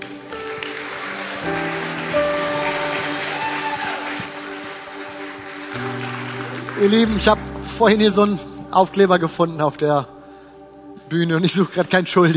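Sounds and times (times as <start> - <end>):
audience applause: 0.0 - 7.7
speech: 6.8 - 10.1, 11.1 - 12.3.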